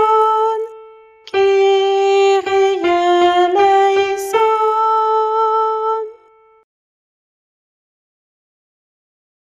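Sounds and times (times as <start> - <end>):
soprano singing a guide chant: 1.3 - 6.2.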